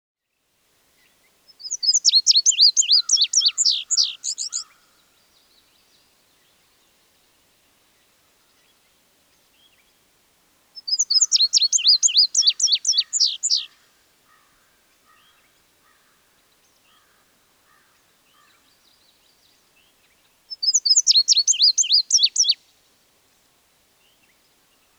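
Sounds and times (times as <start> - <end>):
bird high slurred chirps: 1.5 - 4.9, 10.8 - 13.8, 20.5 - 22.6.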